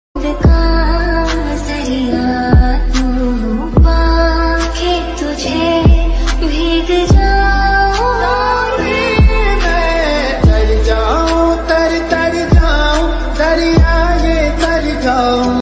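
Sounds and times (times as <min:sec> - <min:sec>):
sad background music ringtone: 0:00.2 - 0:15.6.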